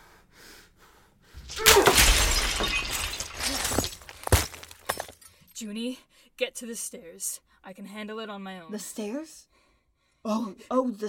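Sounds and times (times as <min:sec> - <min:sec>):
glass-like shards shattering in a magical fantasy scene: 0:01.4 - 0:05.3
speech: 0:05.6 - 0:09.5, 0:10.2 - 0:11.0.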